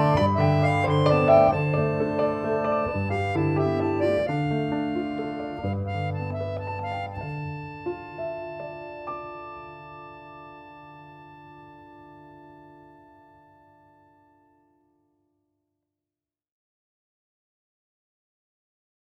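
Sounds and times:
instrumental music: 0.0s - 14.8s.

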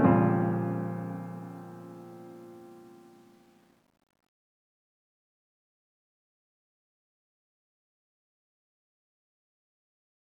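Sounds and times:
piano music: 0.0s - 3.4s.

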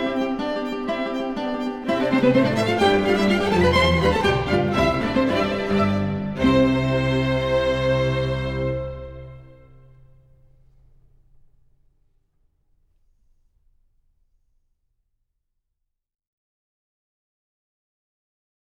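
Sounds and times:
sonata for lute, violin and continuo arranged for guitar: 0.0s - 11.4s.

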